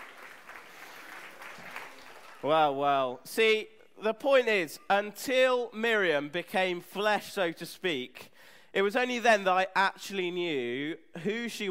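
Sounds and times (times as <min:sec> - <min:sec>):
audience applause: 0:00.0 - 0:02.5
speech: 0:02.4 - 0:11.6.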